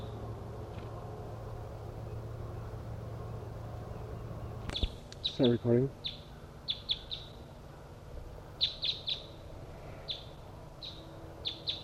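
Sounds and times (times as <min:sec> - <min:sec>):
low hiss: 0:00.0 - 0:11.8
decoy birds and wild birds chirping: 0:04.7 - 0:07.4, 0:08.6 - 0:09.4, 0:10.1 - 0:11.8
speech: 0:04.8 - 0:06.2.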